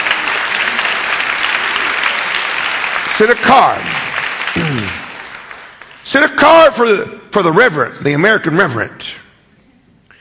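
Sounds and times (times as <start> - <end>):
audience applause: 0.0 - 6.0
speech: 3.2 - 4.0, 6.1 - 9.2.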